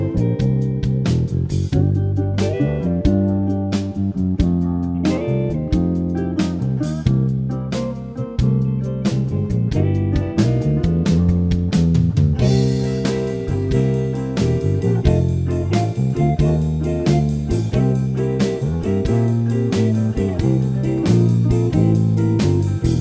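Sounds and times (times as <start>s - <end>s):
slow blues music: 0.0s - 22.9s.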